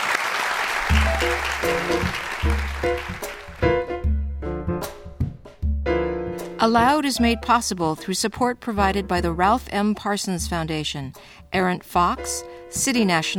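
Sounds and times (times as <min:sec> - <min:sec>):
crowd applause: 0:00.0 - 0:03.9
melodic musical passage with stepped notes: 0:00.8 - 0:09.9
speech: 0:06.6 - 0:13.3.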